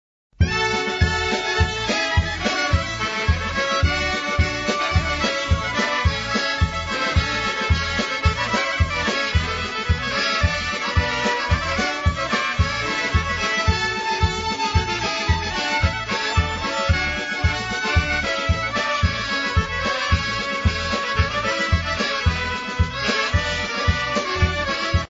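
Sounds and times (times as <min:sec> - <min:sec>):
violins playing polka: 0:00.4 - 0:25.0.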